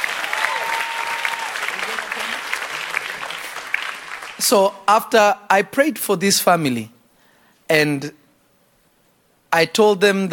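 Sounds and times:
audience clapping: 0:00.0 - 0:04.8
speech: 0:04.5 - 0:07.0, 0:07.7 - 0:08.2, 0:09.5 - 0:10.3.

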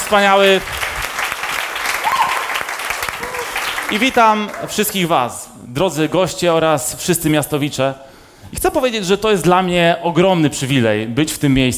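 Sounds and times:
audience applause for a pastor at a church gathering: 0:00.0 - 0:05.1
speech: 0:00.1 - 0:00.8, 0:03.9 - 0:11.7.

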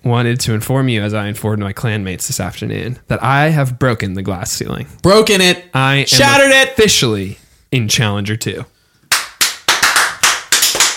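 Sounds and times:
speech: 0:00.0 - 0:08.8
hands clapping: 0:09.0 - 0:10.9.

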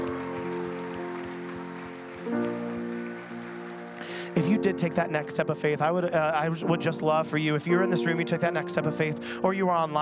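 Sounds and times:
audience applause: 0:00.0 - 0:05.3
speech: 0:04.6 - 0:10.0.

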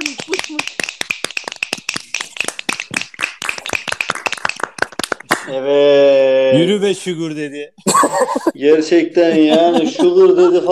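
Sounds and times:
audience clapping: 0:00.0 - 0:05.6
speech: 0:05.5 - 0:06.0, 0:06.6 - 0:10.6
laughter: 0:07.8 - 0:10.6.

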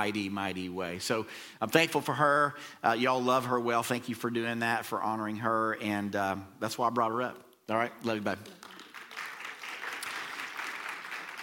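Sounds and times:
speech: 0:00.0 - 0:08.6
audience applause: 0:08.4 - 0:11.4.

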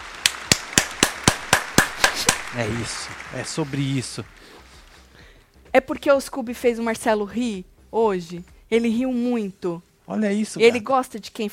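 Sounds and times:
hand clapping: 0:00.1 - 0:05.3
speech: 0:02.5 - 0:04.6, 0:05.8 - 0:11.5.

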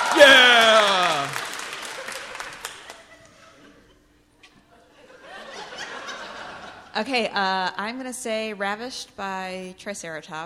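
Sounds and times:
audience clapping: 0:00.0 - 0:03.2
laughter: 0:00.0 - 0:07.0
speech: 0:00.2 - 0:00.6, 0:07.0 - 0:10.4.

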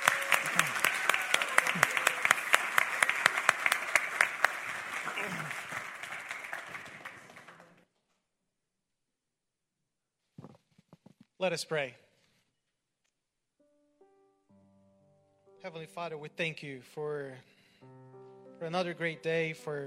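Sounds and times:
audience applause for new Eagle Scouts: 0:00.0 - 0:07.8
speech: 0:11.4 - 0:12.0, 0:15.7 - 0:18.0, 0:18.6 - 0:19.8.

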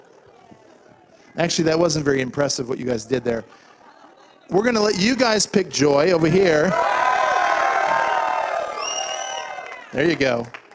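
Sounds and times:
speech: 0:01.4 - 0:03.7, 0:04.5 - 0:07.0, 0:10.0 - 0:10.6
laughter: 0:03.1 - 0:05.3
crowd roaring and cheering: 0:06.1 - 0:10.7
whoops and whistles: 0:08.7 - 0:09.8.

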